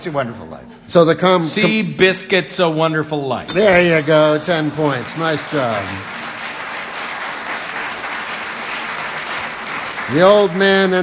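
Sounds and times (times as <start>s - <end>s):
speech: 0.0s - 6.2s, 10.1s - 11.0s
studio audience applause: 4.6s - 11.0s.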